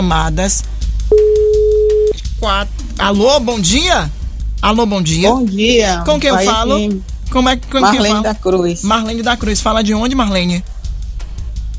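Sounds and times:
speech: 0:00.0 - 0:01.4, 0:02.4 - 0:10.8
low hum: 0:00.0 - 0:10.7
telephone tone during a radio phone-in prize call: 0:01.1 - 0:02.2.

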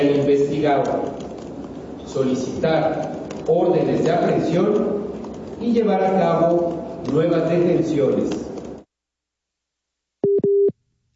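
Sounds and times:
speech: 0:00.0 - 0:01.3, 0:02.1 - 0:05.0, 0:05.6 - 0:08.5
phone busy tone after a dropped call: 0:10.2 - 0:10.7.

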